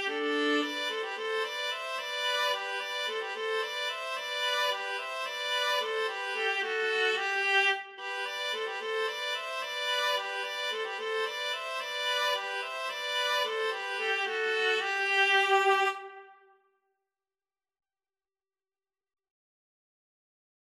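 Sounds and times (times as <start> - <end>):
viola duet: 0.0 - 16.4.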